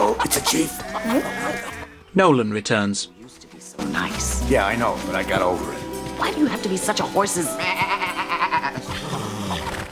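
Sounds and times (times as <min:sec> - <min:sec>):
speech: 0:00.2 - 0:07.8
old goat bleating: 0:00.8 - 0:02.0, 0:07.6 - 0:08.9.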